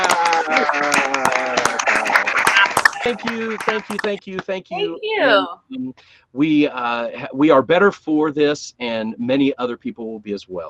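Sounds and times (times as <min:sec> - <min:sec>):
people clapping: 0:00.0 - 0:07.9
laughter: 0:00.0 - 0:10.6
speech: 0:03.1 - 0:10.6.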